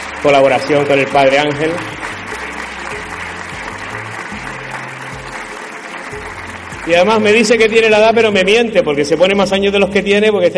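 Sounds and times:
loud audience applause: 0:00.0 - 0:08.4
speech: 0:00.2 - 0:02.0, 0:06.9 - 0:10.5.

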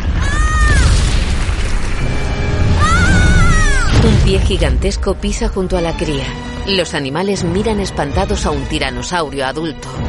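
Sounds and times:
tree crashing down: 0:00.0 - 0:04.3
speech: 0:04.3 - 0:10.0.

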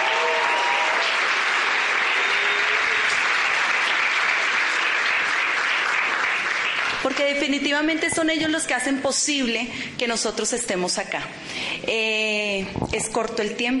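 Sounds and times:
crowd loud applause: 0:00.0 - 0:07.2
speech: 0:07.3 - 0:13.7.

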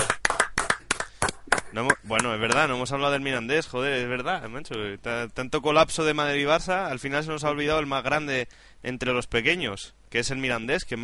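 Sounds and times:
applause: 0:00.0 - 0:02.7
speech: 0:01.7 - 0:11.0.

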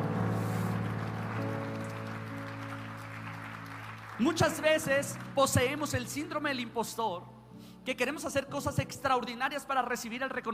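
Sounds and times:
audience applause: 0:00.0 - 0:05.4
speech: 0:04.2 - 0:10.5.

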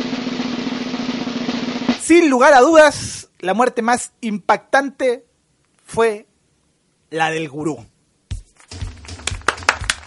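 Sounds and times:
speech: 0:02.1 - 0:05.3, 0:05.9 - 0:06.3, 0:07.1 - 0:07.9
audience applause: 0:08.7 - 0:10.0.

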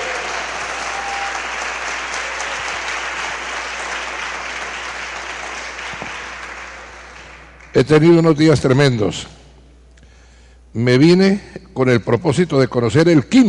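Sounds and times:
audience applause: 0:00.0 - 0:07.7
speech: 0:07.8 - 0:09.4, 0:10.8 - 0:13.4.

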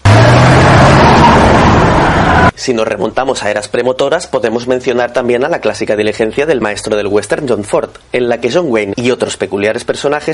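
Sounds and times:
car engine from movie scene roaring: 0:00.0 - 0:02.5
speech: 0:02.6 - 0:10.3.

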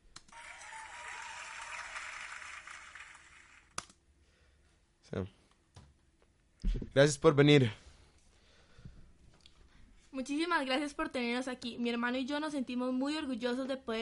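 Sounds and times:
audience applause: 0:00.3 - 0:03.7
speech: 0:05.1 - 0:05.4, 0:06.8 - 0:07.8, 0:10.3 - 0:13.9.

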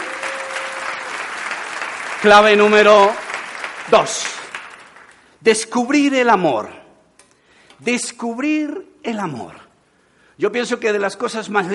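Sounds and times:
audience applauding: 0:00.0 - 0:05.3
speech: 0:02.2 - 0:03.2, 0:03.9 - 0:04.4, 0:05.4 - 0:06.8, 0:07.8 - 0:09.6, 0:10.4 - 0:11.7.

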